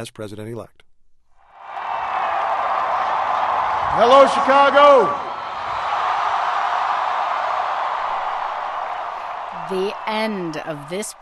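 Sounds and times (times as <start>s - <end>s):
speech: 0.0s - 0.8s, 4.0s - 5.3s, 9.7s - 11.2s
crowd cheering for Barack Obama in a Chicago park along Lake Michigan: 1.5s - 11.2s.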